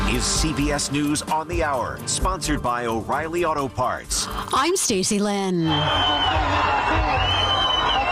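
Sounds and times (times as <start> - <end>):
speech: 0.1 - 8.0
crowd cheering as hostages are released by Hamas: 5.6 - 8.1.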